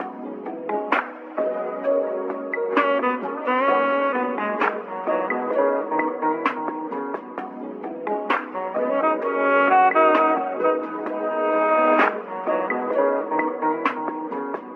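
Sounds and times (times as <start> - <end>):
saxophone: 1.4 - 7.1, 8.6 - 14.3.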